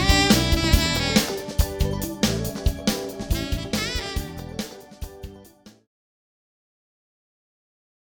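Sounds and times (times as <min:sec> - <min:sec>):
R and B music: 0:00.0 - 0:05.9.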